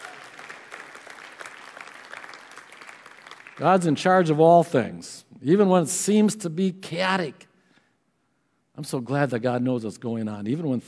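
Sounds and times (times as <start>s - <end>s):
audience clapping: 0.0s - 4.4s
speech: 3.6s - 7.5s, 8.8s - 10.8s.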